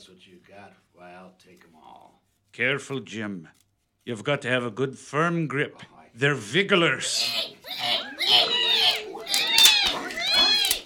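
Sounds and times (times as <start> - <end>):
speech: 0.1 - 9.1
boar squealing while breaking through a wall: 7.0 - 10.8.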